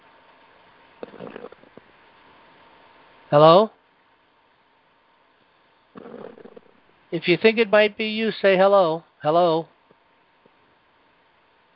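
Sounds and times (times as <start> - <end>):
snoring over a phone line: 1.0 - 1.8, 6.0 - 6.8
speech: 3.3 - 3.8, 7.1 - 9.7.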